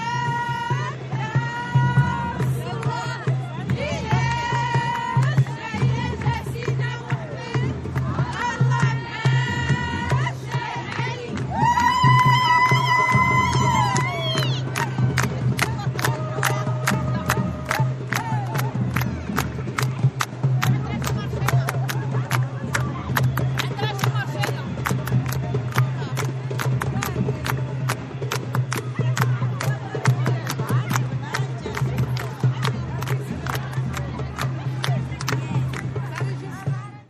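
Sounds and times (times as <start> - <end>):
drums at an anti-racist demonstration: 0.0 - 37.0.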